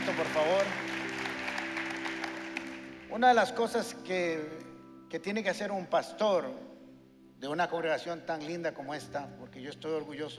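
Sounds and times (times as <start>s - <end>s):
audience applause: 0.0s - 3.2s
speech: 3.2s - 6.7s, 7.4s - 10.3s.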